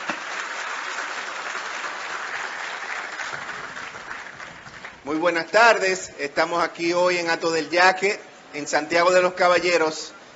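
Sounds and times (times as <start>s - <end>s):
audience applause: 0.0s - 5.0s
speech: 5.0s - 10.2s.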